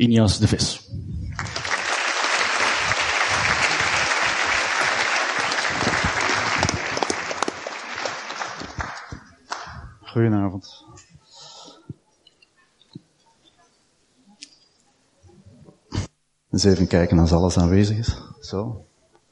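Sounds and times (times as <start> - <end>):
speech: 0.0 - 0.9, 10.2 - 10.9, 16.6 - 18.9
audience applause: 1.3 - 10.0.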